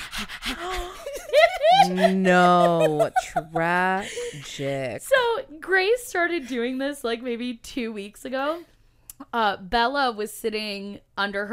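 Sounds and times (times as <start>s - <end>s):
child imitating a panting dog: 0.0s - 1.0s
laughter: 0.6s - 4.5s
speech: 1.8s - 11.5s.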